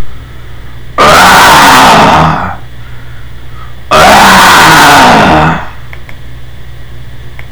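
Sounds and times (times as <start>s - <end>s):
roar: 1.0s - 2.6s, 3.9s - 5.8s.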